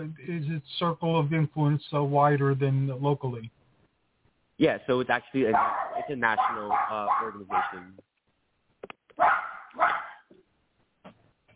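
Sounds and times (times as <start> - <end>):
speech: 0.0 - 3.6, 4.6 - 8.1
small Bichon Frise poodle mix dog barking: 5.4 - 7.9, 9.2 - 10.3.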